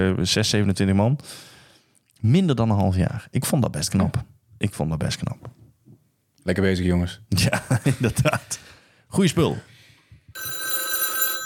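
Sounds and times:
speech: 0.0s - 1.5s, 2.2s - 5.6s, 6.4s - 9.7s
laughter: 7.4s - 8.6s
telephone ringing: 10.4s - 11.4s.

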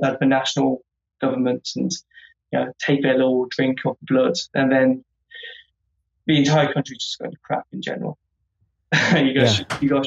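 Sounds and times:
speech: 0.0s - 5.6s, 6.3s - 8.2s, 8.9s - 10.0s
throat clearing: 9.4s - 9.8s.

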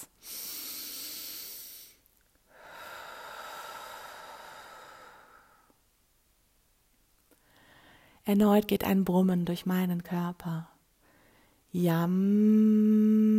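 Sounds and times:
deep breathing in and out: 0.1s - 5.8s, 7.4s - 8.2s
speech: 8.3s - 10.7s, 11.7s - 13.2s.

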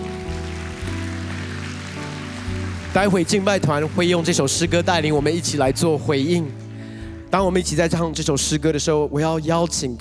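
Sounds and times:
audience applause: 0.0s - 6.0s
speech: 2.9s - 6.6s, 7.3s - 9.9s.

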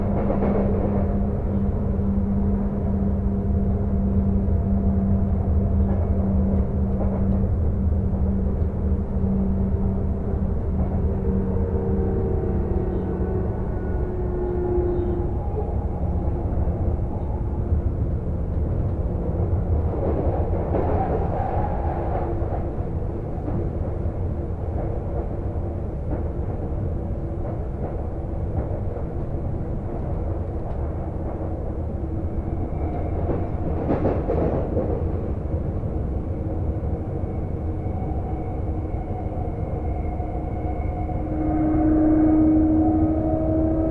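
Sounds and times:
Sotetsu through line train rumble heard onboard: 0.0s - 43.9s
train squeal: 10.8s - 17.6s, 20.3s - 22.6s, 32.1s - 35.1s, 36.2s - 43.9s.

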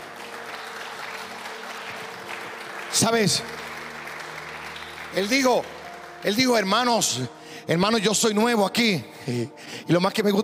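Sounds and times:
audience applause: 0.0s - 7.1s
speech: 2.9s - 3.6s, 5.2s - 10.4s.

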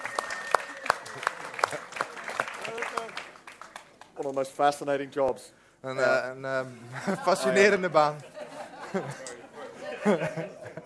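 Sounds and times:
small group clapping: 0.0s - 4.4s
speech: 4.2s - 8.3s, 8.9s - 9.3s, 10.0s - 10.8s
laughter: 6.8s - 10.8s.

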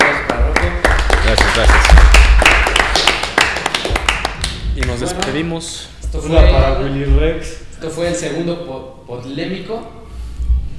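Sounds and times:
audience applause: 0.0s - 5.4s
speech: 5.0s - 10.0s.

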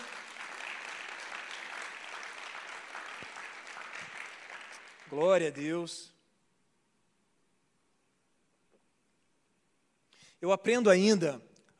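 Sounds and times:
audience applauding: 0.0s - 5.6s
speech: 5.1s - 6.1s, 10.4s - 11.7s.

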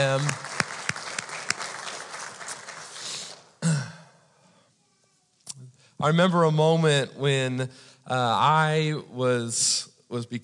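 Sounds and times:
speech: 0.0s - 0.5s, 6.0s - 10.4s
audience clapping: 0.0s - 3.6s.

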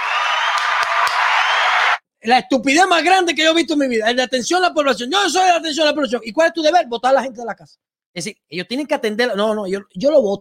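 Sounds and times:
crowd applause: 0.0s - 2.0s
speech: 2.3s - 10.3s.

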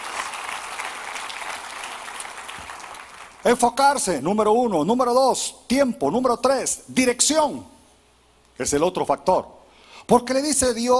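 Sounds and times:
loud church audience applause: 0.0s - 3.4s
speech: 3.4s - 7.7s, 8.6s - 10.9s.

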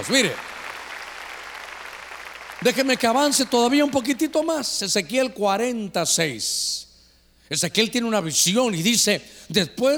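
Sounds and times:
speech: 0.0s - 0.5s, 2.6s - 6.9s, 7.5s - 9.9s
audience clapping: 0.0s - 4.4s.

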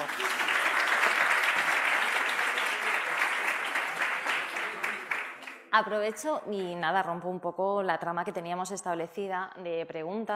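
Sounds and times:
audience applause: 0.0s - 5.7s
speech: 5.8s - 10.3s.

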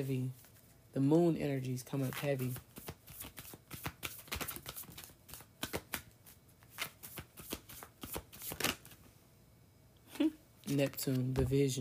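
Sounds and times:
speech: 0.0s - 2.7s, 10.7s - 11.8s
deck of cards shuffling: 1.9s - 9.0s, 10.7s - 11.5s.

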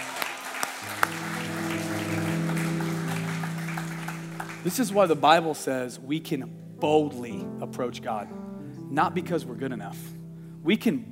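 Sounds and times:
audience applause: 0.0s - 5.4s
speech: 4.6s - 11.0s.

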